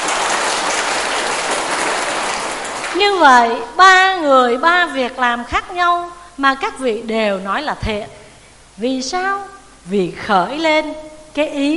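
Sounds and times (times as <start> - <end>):
audience applause during a Buddhist dharma talk: 0.0 - 3.5
speech: 3.0 - 8.2, 8.8 - 11.7.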